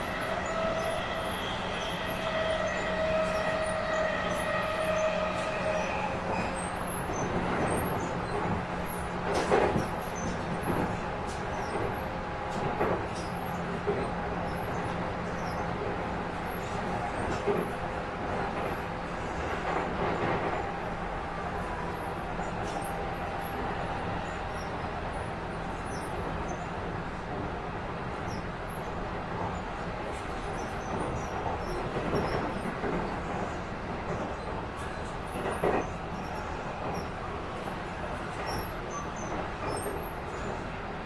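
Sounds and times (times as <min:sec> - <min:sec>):
Yokosuka Sobu Rapid 253 train: 0:00.0 - 0:41.0.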